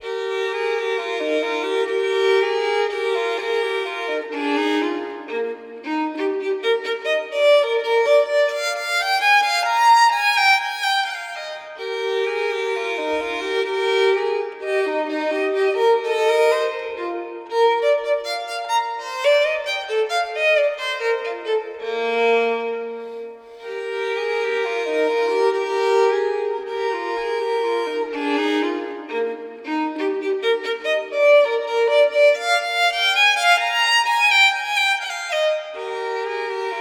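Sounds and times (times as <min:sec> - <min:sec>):
baroque minuet in E major: 0:00.0 - 0:36.7.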